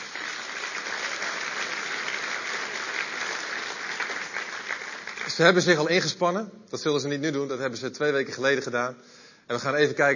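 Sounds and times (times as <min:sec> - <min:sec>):
applause for the children: 0:00.0 - 0:06.1
speech: 0:05.4 - 0:10.1.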